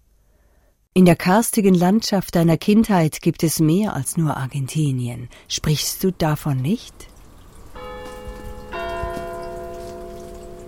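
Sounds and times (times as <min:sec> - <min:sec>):
speech: 0:01.0 - 0:07.1
Ticino church bell ringing: 0:07.7 - 0:10.6.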